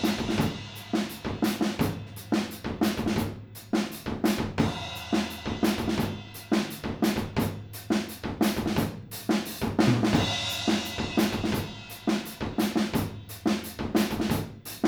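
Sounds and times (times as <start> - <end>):
drums: 0.0 - 14.8.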